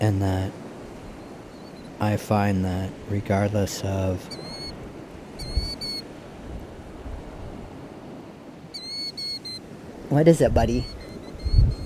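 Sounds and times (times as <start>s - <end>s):
speech: 0.0s - 0.6s, 2.0s - 4.4s, 10.1s - 11.0s
surf at East Beach, Point Pelee: 0.0s - 11.8s
wind on the beach: 0.0s - 11.8s
bird chirping on the beach at East Beach, Point Pelee: 1.2s - 2.0s, 4.2s - 4.8s, 5.4s - 6.0s, 8.7s - 9.6s, 10.6s - 11.8s.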